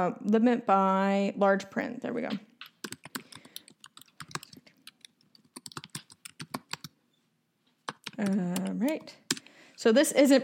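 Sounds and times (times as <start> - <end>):
speech: 0.0 - 2.5, 8.2 - 9.2, 9.8 - 10.4
typing a search on a computer keyboard: 2.6 - 7.0, 7.8 - 9.5.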